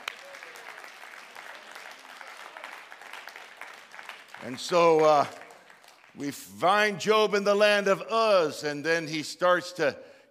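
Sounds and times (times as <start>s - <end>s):
audience hand clapping: 0.0s - 6.5s
speech: 4.4s - 5.4s, 6.2s - 10.1s.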